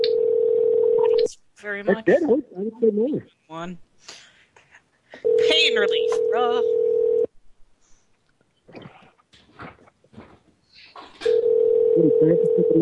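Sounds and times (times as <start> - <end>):
telephone ringing tone during a call: 0.0 - 1.1, 5.2 - 7.3, 11.2 - 12.7
speech: 1.6 - 4.2, 5.2 - 6.9, 12.0 - 12.7.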